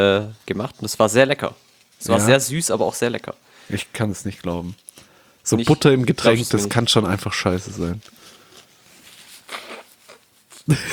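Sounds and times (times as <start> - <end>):
speech: 0.0 - 8.2, 10.7 - 10.9
person blowing nose: 9.4 - 10.9.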